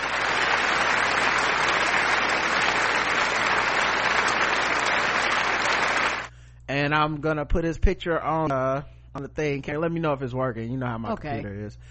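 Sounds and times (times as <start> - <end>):
played applause sound effect: 0.0 - 6.3
speech: 6.8 - 11.9.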